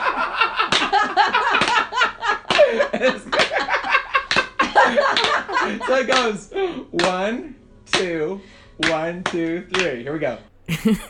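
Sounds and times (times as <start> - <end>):
laughter: 0.0 - 6.2, 10.7 - 11.0
hands clapping: 0.7 - 1.0, 1.6 - 1.9, 3.4 - 3.6, 4.3 - 4.5, 5.1 - 5.4, 7.0 - 7.2, 8.8 - 10.0
speech: 5.9 - 8.4, 9.0 - 11.0.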